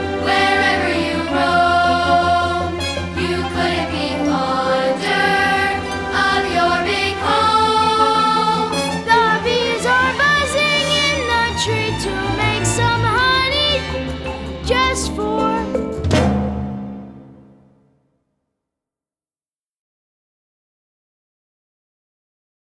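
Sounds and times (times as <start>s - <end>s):
person singing: 0.0s - 16.2s.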